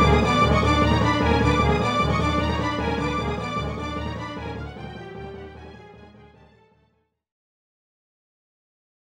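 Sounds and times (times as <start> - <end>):
boss battle background music: 0.0 - 6.4.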